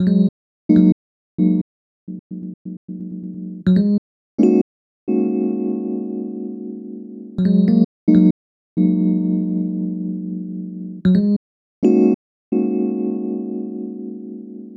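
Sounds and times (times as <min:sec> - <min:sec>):
keyboard: 0:00.0 - 0:14.7.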